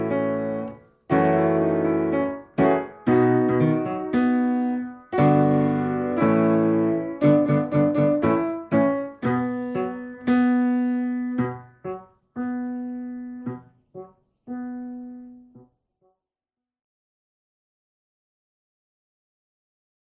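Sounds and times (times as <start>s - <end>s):
instrumental music: 0.0s - 15.7s.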